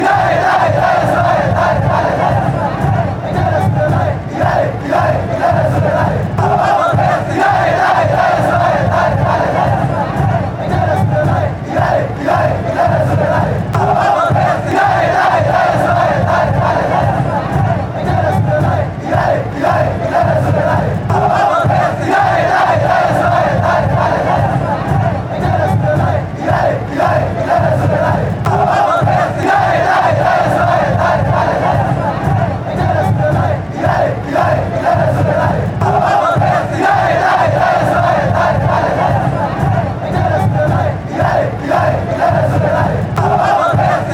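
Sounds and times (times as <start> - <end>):
crowd chanting: 0.0 - 44.1.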